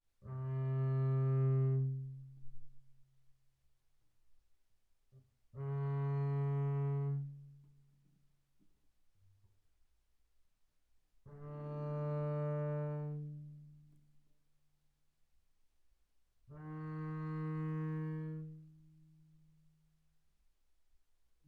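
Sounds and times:
double bass bowed on the D string mezzo forte: 0.3s - 2.5s, 5.6s - 7.7s, 11.3s - 14.0s, 16.5s - 19.0s.

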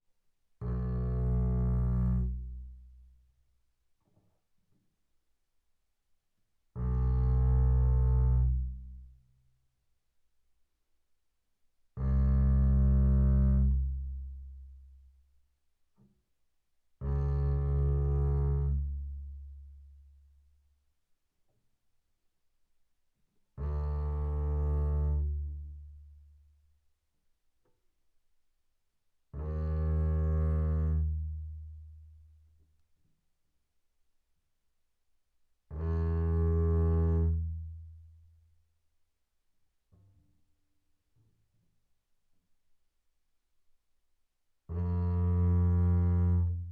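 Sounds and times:
double bass bowed on E string fortissimo: 0.6s - 3.1s, 6.8s - 9.2s, 12.0s - 15.0s, 17.0s - 20.2s, 23.6s - 26.2s, 29.4s - 32.2s, 35.7s - 38.1s, 44.7s - 46.7s.

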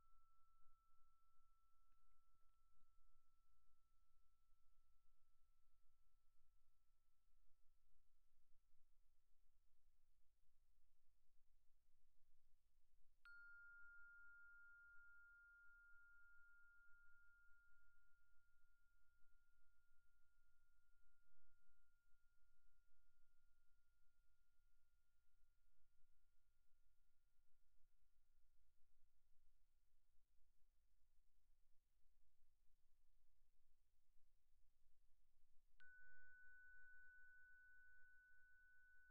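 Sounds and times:
soft plastic bells: 13.3s - 18.7s, 35.8s - 39.1s.

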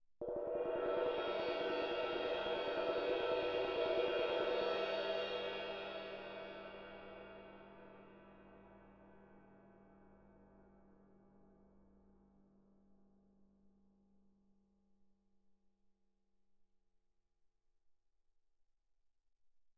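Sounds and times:
ride suspended cymbal roll with mallet: 0.2s - 9.8s.

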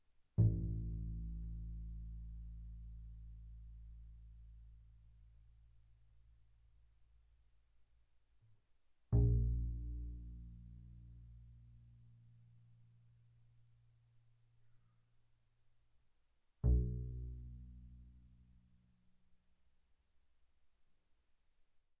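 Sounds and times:
double bass pizzicato on the A string: 0.4s - 4.9s, 9.1s - 12.4s, 16.6s - 18.4s.

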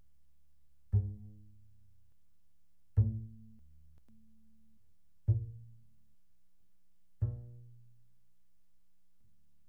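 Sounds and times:
double bass pizzicato mezzo forte on the E string: 0.8s - 2.2s, 2.9s - 6.1s, 7.2s - 8.3s.

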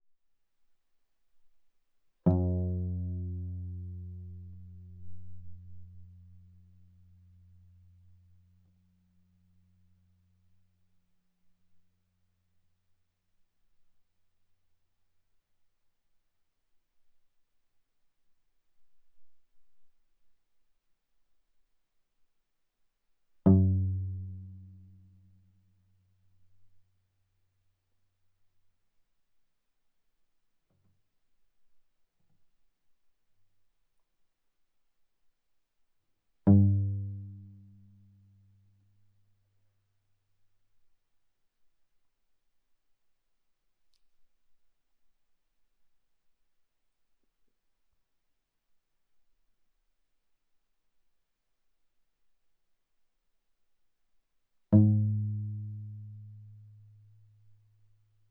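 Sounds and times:
viola pizzicato sul G fortissimo G3 B3: 2.3s - 6.4s, 23.5s - 25.0s, 36.5s - 38.1s, 54.8s - 56.9s.

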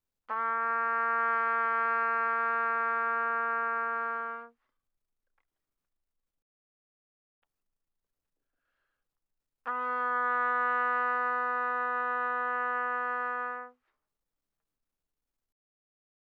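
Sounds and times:
trumpet notes without vibrato, pianissimo: 0.3s - 4.6s, 9.6s - 13.8s.

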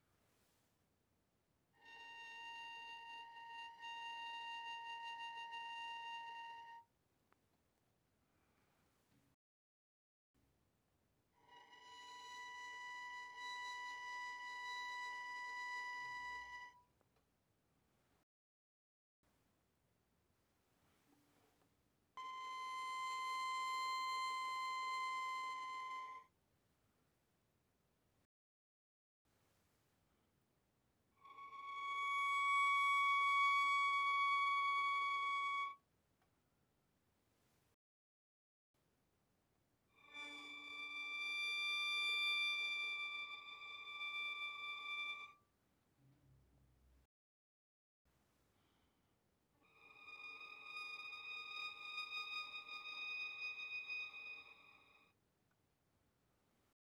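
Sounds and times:
violin arco pianissimo on the A string: 1.8s - 6.9s, 11.4s - 16.8s, 22.2s - 26.3s, 31.2s - 35.8s, 40.0s - 45.4s, 49.6s - 55.1s.

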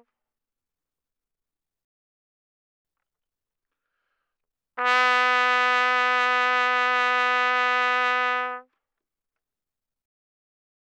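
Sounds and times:
trumpet vibrato, fortissimo, E3 to B3: 4.8s - 8.6s.

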